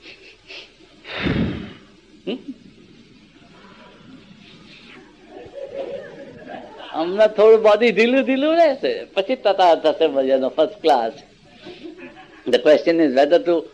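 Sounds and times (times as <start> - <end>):
forceful exhale through the mouth during a breathing exercise: 1.1 - 1.9
speech: 2.3 - 2.7, 7.2 - 11.3, 12.4 - 13.7
laughter: 4.9 - 7.4, 11.4 - 12.9.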